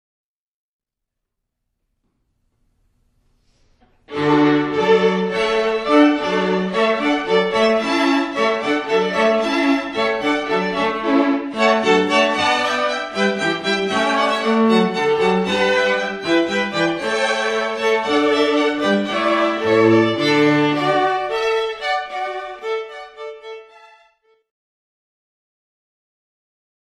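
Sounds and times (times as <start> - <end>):
hornpipe tune: 4.1 - 23.4.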